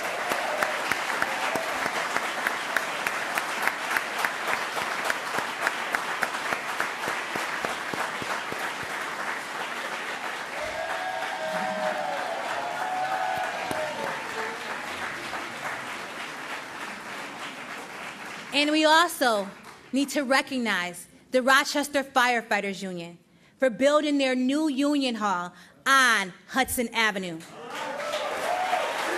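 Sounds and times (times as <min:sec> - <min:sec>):
audience applause: 0:00.0 - 0:18.6, 0:27.6 - 0:29.1
speech: 0:18.6 - 0:27.6.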